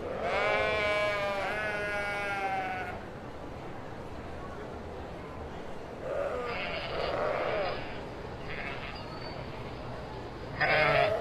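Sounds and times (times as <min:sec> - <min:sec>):
sheep bleating: 0:00.1 - 0:03.0, 0:06.1 - 0:08.0, 0:10.6 - 0:11.1.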